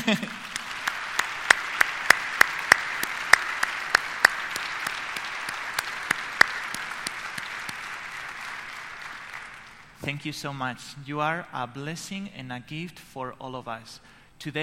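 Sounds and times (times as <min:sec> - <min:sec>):
audience applause: 0:00.0 - 0:10.0
speech: 0:10.1 - 0:14.6.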